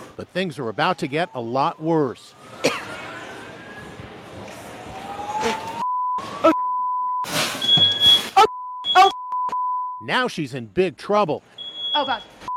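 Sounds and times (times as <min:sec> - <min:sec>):
speech: 0:00.2 - 0:02.7, 0:10.0 - 0:12.3
building smoke alarm beeping: 0:05.8 - 0:10.0, 0:11.6 - 0:12.5.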